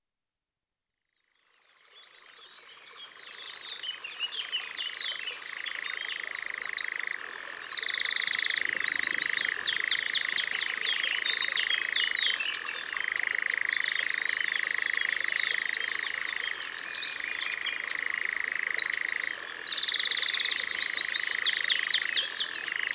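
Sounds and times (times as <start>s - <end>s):
Eurasian wren singing trills: 4.8s - 22.9s.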